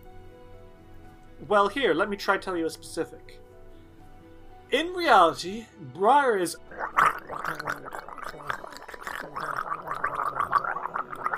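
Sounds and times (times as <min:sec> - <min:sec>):
speech: 0:01.4 - 0:03.4, 0:04.7 - 0:08.6
person imitating gargling water with their voice: 0:06.6 - 0:11.3.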